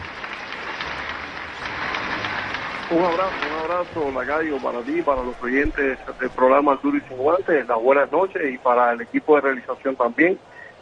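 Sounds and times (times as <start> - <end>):
audience applause: 0.0 - 7.8
speech: 2.9 - 10.7.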